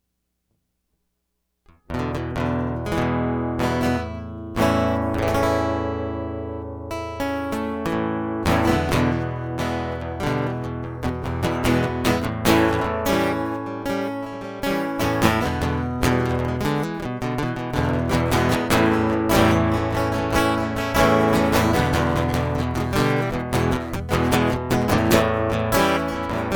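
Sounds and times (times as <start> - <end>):
guitar loop: 1.7 - 26.5.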